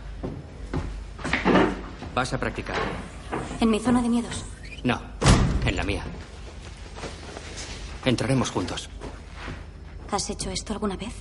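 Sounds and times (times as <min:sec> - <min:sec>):
speech: 0:02.2 - 0:05.1, 0:05.8 - 0:06.4, 0:08.0 - 0:09.0, 0:10.1 - 0:11.1
door being closed: 0:02.5 - 0:06.0.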